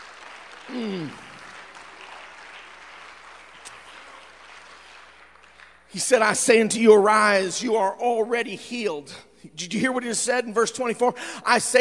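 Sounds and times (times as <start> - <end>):
audience clapping hands: 0.0 - 6.6
speech: 0.7 - 1.2, 5.9 - 11.7.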